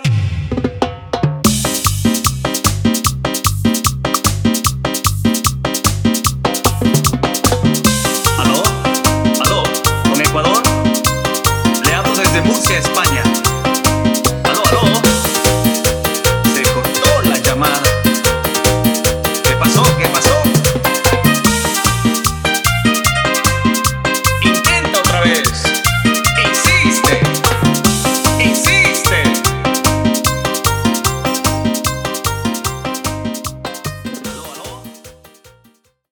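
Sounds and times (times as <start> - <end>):
instrumental chicha music: 0.1 - 35.9.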